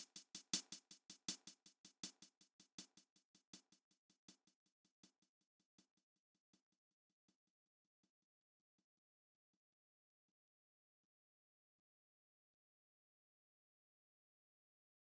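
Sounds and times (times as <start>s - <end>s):
drums at 160 bpm: 0.0s - 3.8s.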